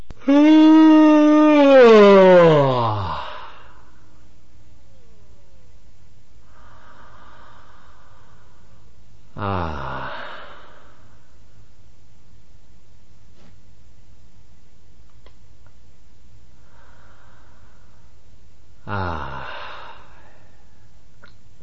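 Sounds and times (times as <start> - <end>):
long voiced yawn: 0.2 - 3.8, 9.4 - 11.0, 18.8 - 20.5
faint quiet breaths: 2.8 - 5.6, 6.4 - 11.8, 16.5 - 21.1.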